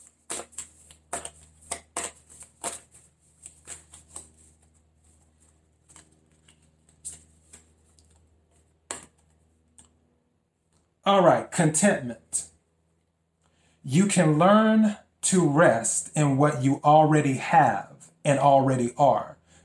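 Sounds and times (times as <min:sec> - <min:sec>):
oracle cards being shuffled and drawn: 0:00.0 - 0:10.0
speech: 0:11.1 - 0:12.5, 0:13.9 - 0:19.4.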